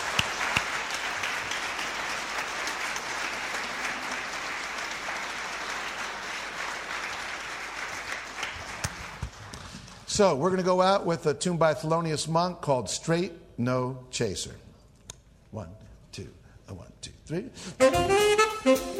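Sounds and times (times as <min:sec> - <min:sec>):
audience applause for jazz band members at a live concert: 0:00.0 - 0:09.6
speech: 0:10.2 - 0:14.6, 0:15.5 - 0:18.9.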